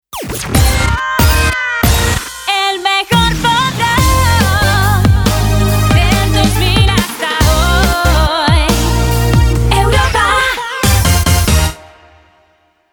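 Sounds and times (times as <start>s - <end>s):
EDM news jingle: 0.1s - 12.2s.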